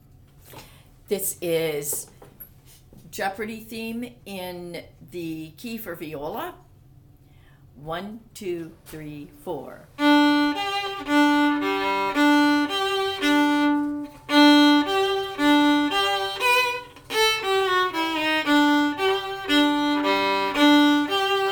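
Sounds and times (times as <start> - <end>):
viola: 10.0 - 21.5.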